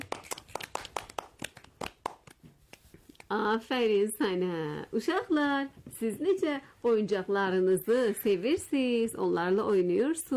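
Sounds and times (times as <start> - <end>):
children clapping in a classroom play session: 0.0 - 2.8
speech: 3.3 - 10.3.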